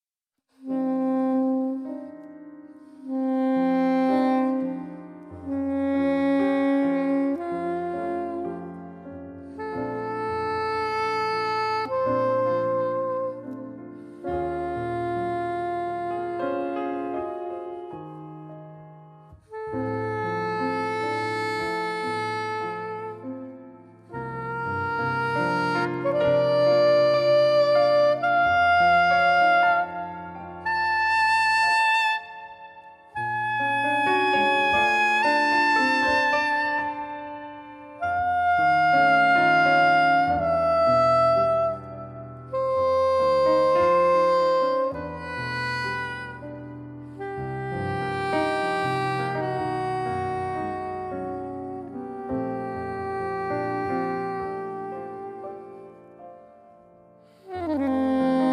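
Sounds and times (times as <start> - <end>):
saxophone ballad: 0.6 - 58.5.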